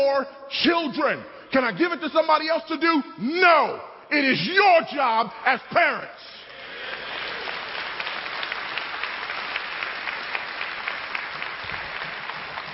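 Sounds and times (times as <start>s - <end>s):
speech: 0.0s - 7.0s
audience clapping: 6.4s - 12.7s.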